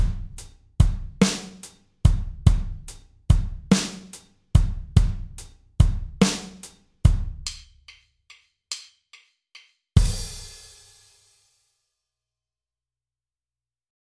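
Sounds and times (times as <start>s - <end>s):
groove at 72 bpm: 0.0s - 8.0s.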